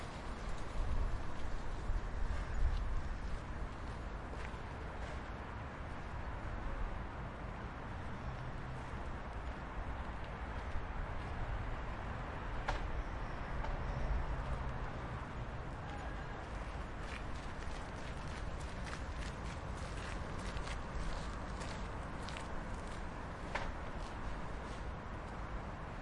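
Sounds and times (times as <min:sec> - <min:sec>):
semi distant city traffic by a lake: 0:00.0 - 0:25.9.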